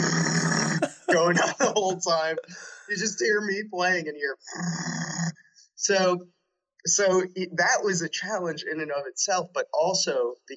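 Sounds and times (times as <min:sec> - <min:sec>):
voice imitating a running generator: 0:00.2 - 0:03.3
laughter: 0:00.5 - 0:03.3
speech: 0:01.1 - 0:05.1, 0:05.8 - 0:10.5.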